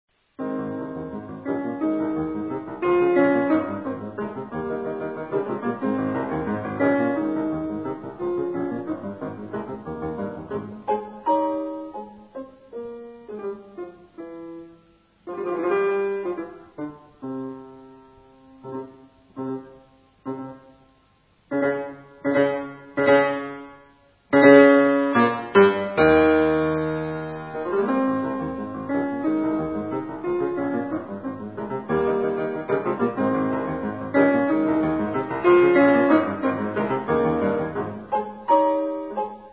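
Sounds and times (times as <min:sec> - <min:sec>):
piano: 0:00.1 - 0:39.5.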